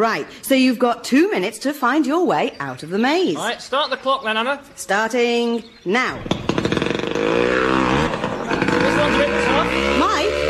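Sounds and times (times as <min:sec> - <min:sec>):
speech: 0:00.0 - 0:06.5, 0:07.2 - 0:07.7
chainsaw cutting through hedges: 0:06.2 - 0:10.4.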